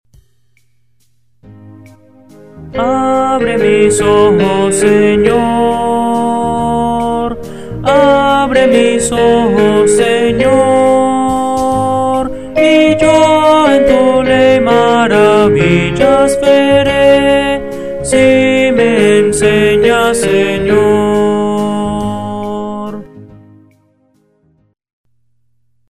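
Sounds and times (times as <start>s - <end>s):
Christian hymns: 2.7s - 23.1s.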